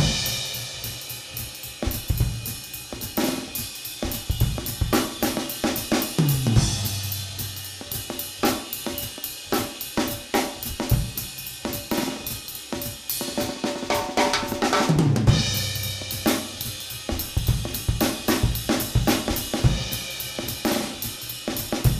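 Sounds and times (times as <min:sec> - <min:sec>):
swing and big-band-style drum playing at 220 BPM: 0:00.0 - 0:21.9.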